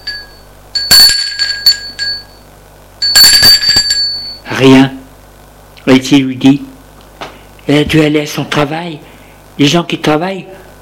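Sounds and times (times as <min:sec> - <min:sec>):
apartment doorbell ringing: 0:00.0 - 0:02.4, 0:03.0 - 0:04.5
speech: 0:04.6 - 0:05.0, 0:06.0 - 0:06.7, 0:07.7 - 0:10.6.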